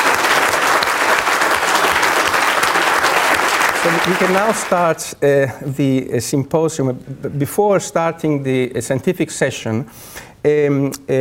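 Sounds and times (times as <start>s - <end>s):
audience applause: 0.0s - 5.0s
speech: 3.8s - 11.2s.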